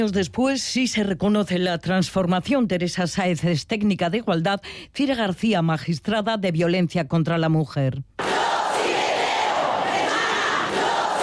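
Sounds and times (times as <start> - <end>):
speech: 0.0 - 8.3
large protest crowd shouting and chanting: 8.2 - 11.2.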